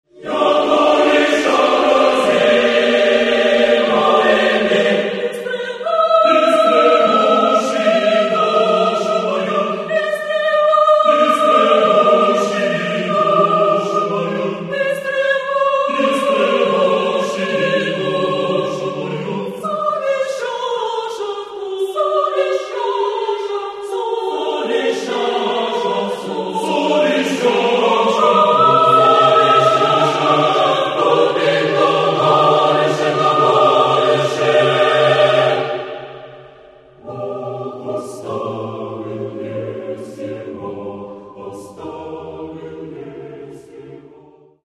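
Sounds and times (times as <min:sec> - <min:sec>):
choir singing: 0:00.0 - 0:44.6.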